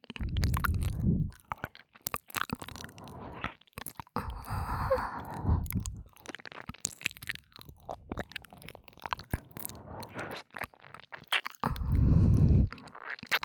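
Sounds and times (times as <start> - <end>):
ASMR ear licking sounds: 0.0 - 13.4
ASMR breathy sighs: 0.2 - 1.4, 2.6 - 3.6, 4.2 - 6.2, 9.3 - 10.5, 11.6 - 13.0.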